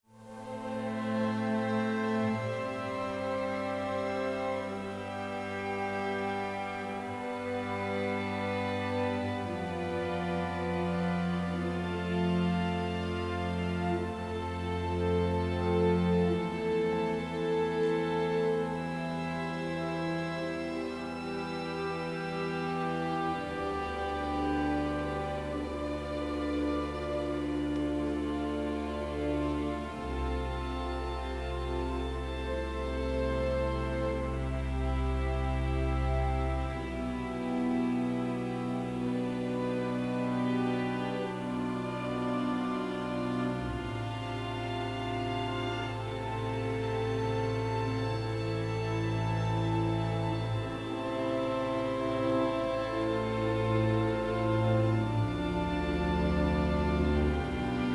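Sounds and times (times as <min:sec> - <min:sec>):
string ensemble: 0:00.0 - 0:57.9.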